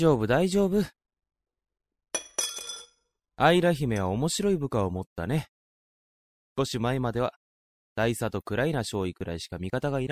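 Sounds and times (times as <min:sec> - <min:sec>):
speech: 0:00.0 - 0:01.0, 0:03.4 - 0:05.5, 0:06.6 - 0:07.4, 0:08.0 - 0:10.1
dishes clinking while being cleared away: 0:02.2 - 0:03.0.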